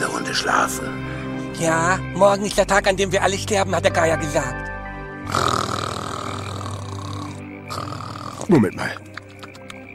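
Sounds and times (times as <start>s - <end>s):
speech: 0.3s - 4.6s, 8.5s - 9.1s
snoring: 5.3s - 8.6s.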